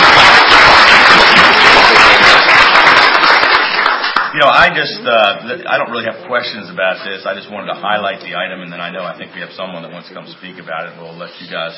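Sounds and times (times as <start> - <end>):
round of applause: 0.0 - 4.4
speech: 4.6 - 11.7.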